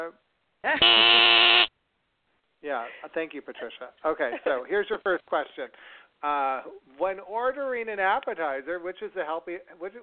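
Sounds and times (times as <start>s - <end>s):
speech: 0.1s - 1.4s, 2.6s - 10.0s
game show buzzer: 0.8s - 1.7s.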